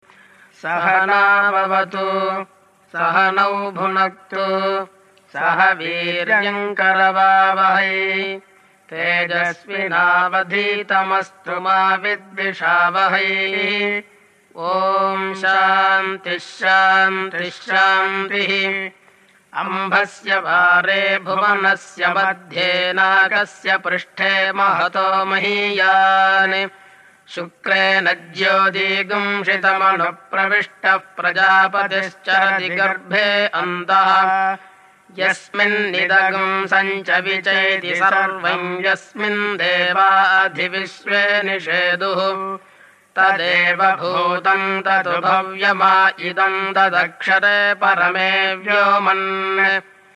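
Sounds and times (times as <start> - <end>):
vedic chanting: 0.0 - 50.1.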